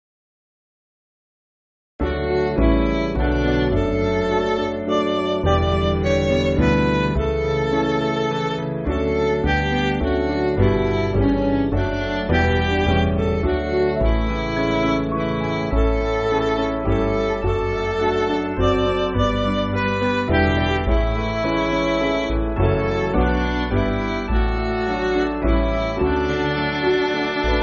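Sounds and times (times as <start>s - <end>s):
MIDI church backing music: 2.0s - 27.6s.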